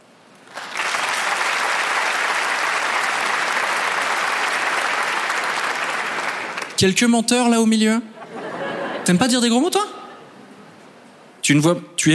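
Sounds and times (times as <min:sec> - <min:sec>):
audience applause: 0:00.4 - 0:06.8
speech: 0:06.8 - 0:08.1, 0:09.0 - 0:09.9, 0:11.5 - 0:12.1
laughter: 0:08.2 - 0:09.3.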